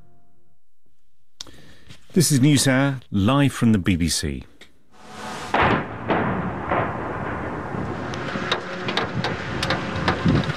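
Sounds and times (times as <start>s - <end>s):
speech: 2.1s - 4.5s
missile and drone strikes hitting a city: 5.0s - 10.5s
sharp cracks and thuds of strikes: 5.0s - 10.5s
steady roar: 5.0s - 10.5s.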